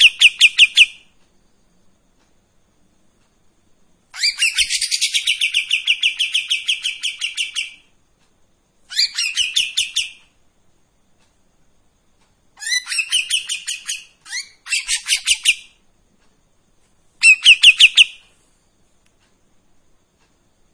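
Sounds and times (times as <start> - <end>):
Streak-eared bulbul buzzy chattering song: 0.0 - 1.2, 4.1 - 8.0, 8.8 - 10.4, 12.5 - 15.9, 17.2 - 18.3.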